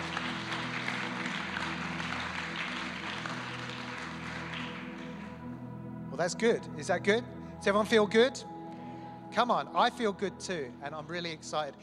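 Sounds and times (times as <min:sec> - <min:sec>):
crowd clapping and cheering: 0:00.0 - 0:05.6
sustained low keyboard chords: 0:00.0 - 0:11.8
speech: 0:06.2 - 0:08.5, 0:09.3 - 0:11.8.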